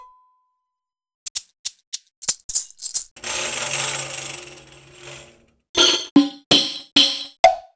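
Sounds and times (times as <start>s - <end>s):
Roland BK-5 keyboard percussion: 1.3s - 7.4s.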